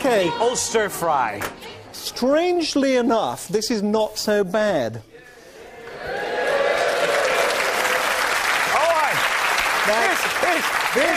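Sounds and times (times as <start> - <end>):
speech: 0.1 - 5.1, 10.6 - 11.1
audience clapping: 5.9 - 11.1.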